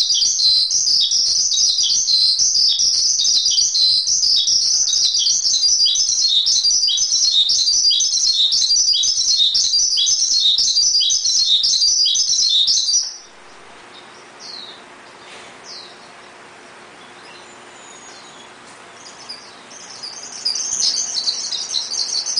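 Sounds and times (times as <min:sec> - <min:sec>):
Oriental magpie-robin singing a continuous warble: 0:00.0 - 0:13.2, 0:19.0 - 0:22.3.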